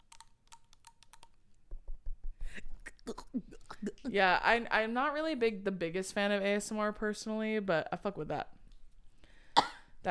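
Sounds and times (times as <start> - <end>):
fingers tapping on a drink bottle: 0.0 - 2.3
speech: 3.1 - 8.6.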